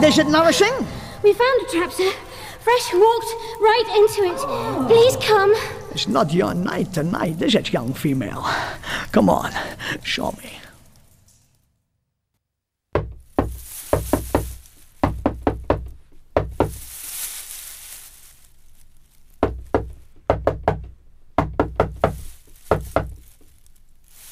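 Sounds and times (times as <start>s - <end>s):
speech: 0.0s - 10.6s
secret knock on a door: 12.9s - 16.8s, 19.4s - 23.2s.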